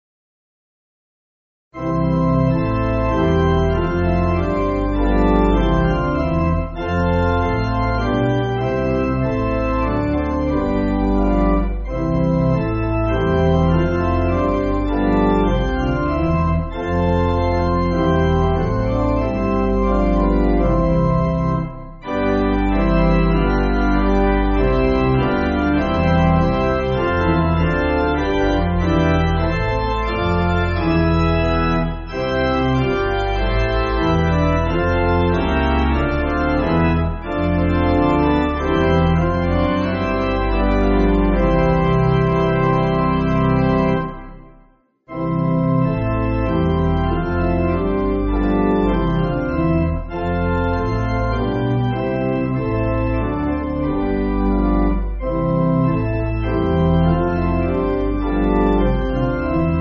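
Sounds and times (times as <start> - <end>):
pipe organ backing for churches: 1.8 - 59.7.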